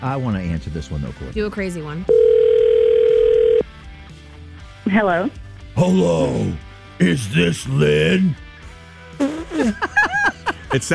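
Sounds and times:
speech: 0:00.0 - 0:02.4, 0:04.8 - 0:08.4, 0:09.2 - 0:10.1, 0:10.7 - 0:10.9
telephone ringing tone while waiting to connect: 0:02.1 - 0:03.6
laughter: 0:09.5 - 0:10.9.

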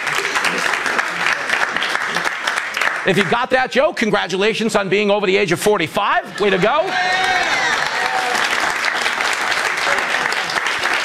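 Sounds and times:
audience applause: 0:00.0 - 0:03.4, 0:06.4 - 0:11.0
speech: 0:03.1 - 0:07.5.

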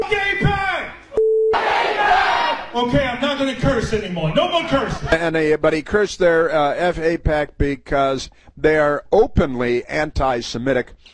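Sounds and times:
short steady beep: 0:01.2 - 0:01.6
crowd cheering and shouting at a political rally: 0:01.5 - 0:02.8
speech: 0:02.8 - 0:11.1.

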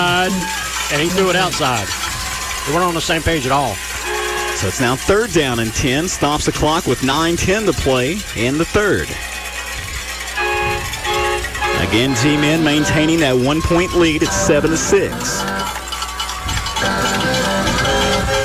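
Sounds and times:
speech: 0:00.0 - 0:02.0, 0:02.6 - 0:03.9, 0:04.6 - 0:09.3, 0:11.9 - 0:15.6
train horn: 0:03.8 - 0:05.1, 0:10.3 - 0:15.9, 0:16.5 - 0:18.4.

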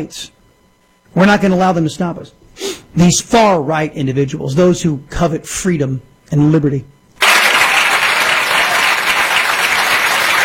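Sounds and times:
speech: 0:00.0 - 0:00.4, 0:01.1 - 0:07.0
scant applause from a small audience: 0:07.2 - 0:10.4.

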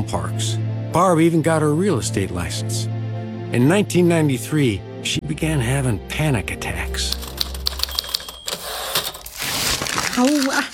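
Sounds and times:
speech: 0:00.0 - 0:07.3, 0:10.2 - 0:10.7
typing on leases: 0:07.1 - 0:09.2.

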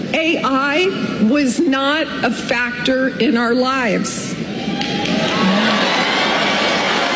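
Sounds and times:
speech: 0:00.1 - 0:04.3
audience applause: 0:04.7 - 0:07.1.

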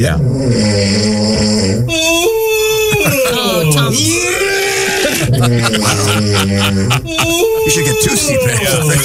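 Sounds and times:
speech: 0:00.0 - 0:02.1, 0:05.5 - 0:09.0
rasping snore: 0:00.1 - 0:02.0, 0:04.1 - 0:07.1
groaning breaths: 0:00.2 - 0:07.8
laughter: 0:02.8 - 0:09.0.

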